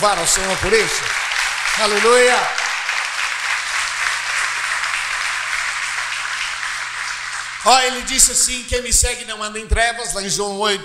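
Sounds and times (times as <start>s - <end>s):
speech: 0.0s - 1.2s, 1.8s - 2.6s, 7.6s - 10.8s
large crowd applauding: 0.0s - 8.5s.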